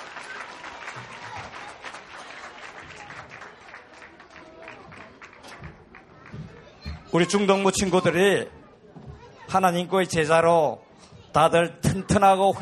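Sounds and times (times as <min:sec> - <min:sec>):
audience applause: 0:00.0 - 0:06.4
speech: 0:07.1 - 0:08.6, 0:09.5 - 0:12.6.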